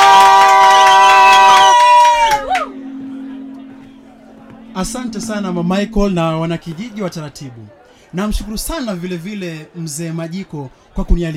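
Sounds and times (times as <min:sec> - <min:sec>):
crowd cheering to welcome a guest: 0:00.0 - 0:05.2
speech: 0:04.8 - 0:11.3.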